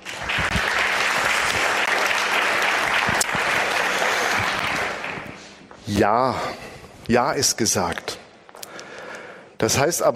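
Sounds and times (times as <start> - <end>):
audience applause: 0.0 - 5.6
speech: 5.9 - 8.2, 9.6 - 10.1.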